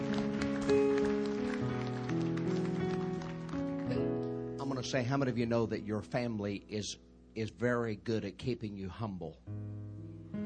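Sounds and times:
audience applause: 0:00.0 - 0:04.1
sustained organ-like chords: 0:00.0 - 0:08.6, 0:09.4 - 0:10.4
speech: 0:04.8 - 0:10.0.

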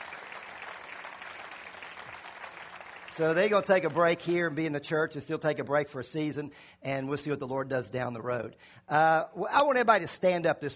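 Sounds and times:
audience applause: 0:00.0 - 0:04.6
speech: 0:03.2 - 0:10.7.

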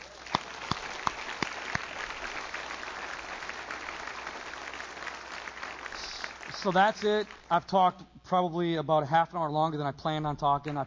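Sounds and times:
audience clapping: 0:00.0 - 0:07.6
speech: 0:06.6 - 0:10.8.

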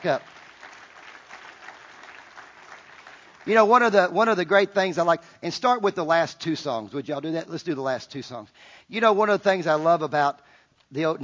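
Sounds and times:
speech: 0:00.0 - 0:00.4, 0:03.4 - 0:11.2
congregation clapping in a church service: 0:00.0 - 0:03.5.

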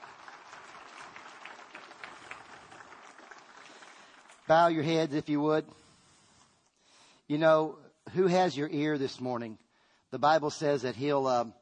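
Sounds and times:
audience clapping: 0:00.0 - 0:05.2
speech: 0:04.5 - 0:05.8, 0:07.3 - 0:11.5.

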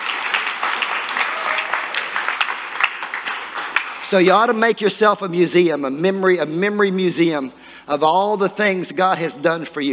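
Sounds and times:
audience clapping: 0:00.0 - 0:04.4
speech: 0:04.1 - 0:09.9.

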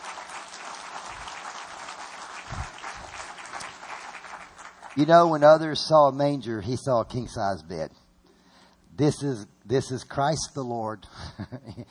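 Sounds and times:
audience applauding: 0:00.0 - 0:05.5
speech: 0:05.0 - 0:08.0, 0:09.0 - 0:11.8.

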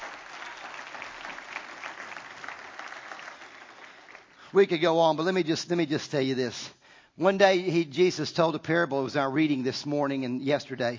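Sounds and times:
audience applause: 0:00.0 - 0:04.4
speech: 0:04.5 - 0:10.9.

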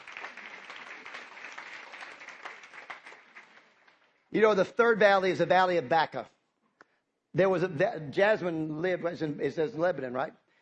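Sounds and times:
audience clapping: 0:00.0 - 0:06.2
speech: 0:04.3 - 0:06.4, 0:07.4 - 0:10.4.

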